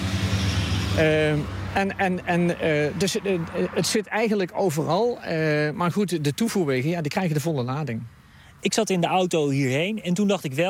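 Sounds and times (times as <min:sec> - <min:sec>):
motorcycles passing by on a road: 0:00.0 - 0:07.8
speech: 0:01.0 - 0:10.6.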